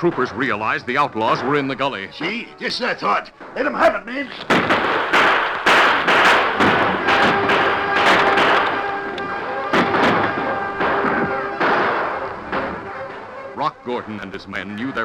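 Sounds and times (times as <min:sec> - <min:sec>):
speech: 0:00.0 - 0:05.2, 0:13.8 - 0:15.0
gunfire in a shootout between outlaws and wagon guards and troopers: 0:04.3 - 0:13.2.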